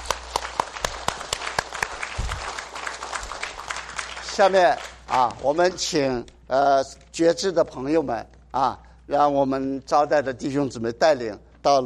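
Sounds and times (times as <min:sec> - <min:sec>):
audience applauding: 0:00.0 - 0:05.5
speech: 0:04.4 - 0:11.8.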